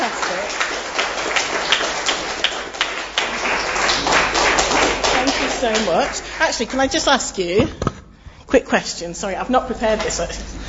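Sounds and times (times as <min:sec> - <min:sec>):
audience applause for children: 0:00.0 - 0:07.6
speech: 0:05.6 - 0:07.9, 0:08.5 - 0:10.6.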